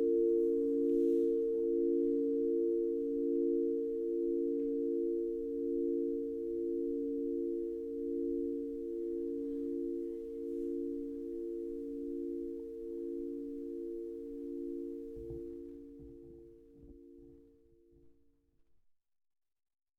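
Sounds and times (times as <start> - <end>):
crystal singing bowls: 0.0 - 17.8.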